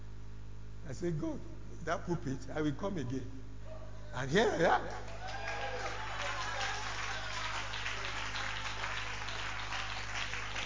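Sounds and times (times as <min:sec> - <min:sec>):
faint low hum: 0:00.0 - 0:10.6
speech: 0:00.9 - 0:03.5, 0:04.1 - 0:05.2
audience clapping in a hall: 0:04.8 - 0:10.6
voices cheering: 0:04.9 - 0:10.6.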